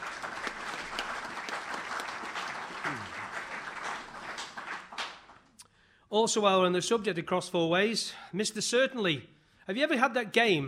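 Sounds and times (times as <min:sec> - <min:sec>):
audience applause: 0:00.0 - 0:05.5
speech: 0:02.9 - 0:03.1, 0:06.1 - 0:10.6.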